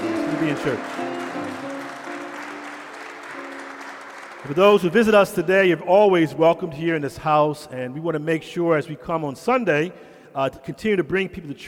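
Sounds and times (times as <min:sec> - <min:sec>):
audience applause: 0:00.0 - 0:05.4
speech: 0:00.4 - 0:01.1, 0:04.5 - 0:11.6.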